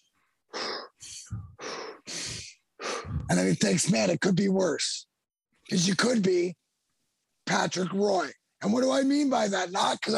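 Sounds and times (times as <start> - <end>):
deep breaths: 0.5 - 3.4
speech: 3.3 - 5.0, 5.7 - 6.6, 7.5 - 10.1.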